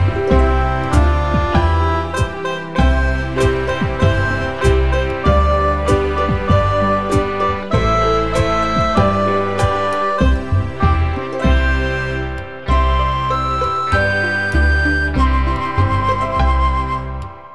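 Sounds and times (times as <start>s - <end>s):
blues harmonica to play along: 0.0s - 17.5s.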